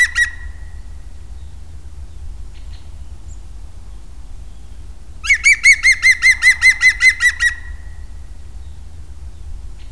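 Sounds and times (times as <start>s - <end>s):
European green woodpecker giving loud ringing notes: 0.0s - 0.7s, 5.2s - 7.8s.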